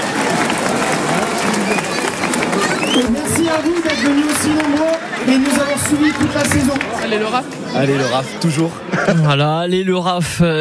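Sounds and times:
crowd applauding for volunteers: 0.0 - 8.2
speech: 3.0 - 10.6.

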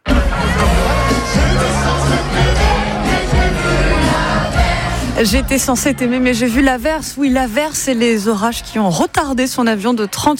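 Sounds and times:
festival crowd singing along at concert: 0.0 - 7.4
speech: 5.2 - 10.3.

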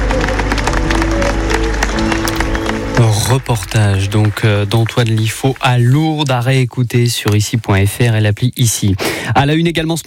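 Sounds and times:
crowd applauding: 0.0 - 6.6
speech: 3.3 - 10.0.

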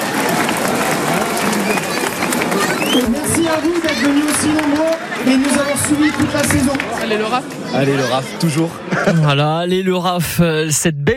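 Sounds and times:
crowd applause for volunteers at a football club's end-of-season gathering: 0.0 - 8.6
speech: 3.0 - 11.1.

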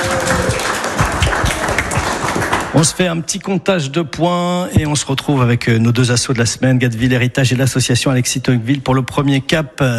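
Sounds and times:
quiz-game audience applause: 0.0 - 3.0
speech: 2.8 - 9.9.

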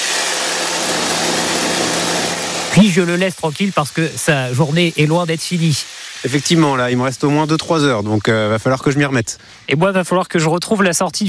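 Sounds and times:
hedge trimmer running: 0.0 - 7.2
speech: 2.8 - 11.2.

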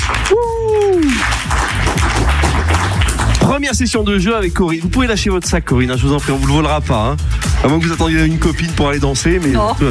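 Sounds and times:
audience applause: 0.0 - 3.6
short falling whoop or whistle: 0.3 - 1.2
speech: 3.6 - 9.8.

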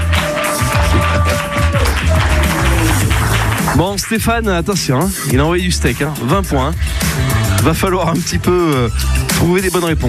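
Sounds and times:
audience applauding: 0.0 - 4.2
speech: 3.8 - 10.0.

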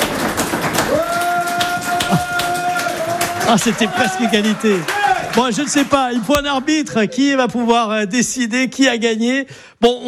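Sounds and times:
audience applause: 0.0 - 6.8
speech: 3.5 - 10.0.

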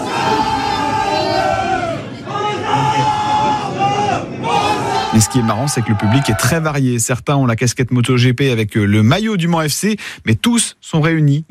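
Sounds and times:
football supporters including Le Mans FC fans chanting in a packed bar: 0.0 - 6.8
speech: 5.2 - 11.4.

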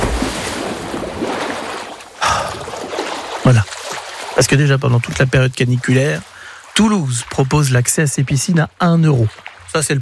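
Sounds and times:
loud splash of a dive plunge into water: 0.0 - 4.5
low wash of moving water: 0.0 - 9.9
speech: 4.4 - 9.9.

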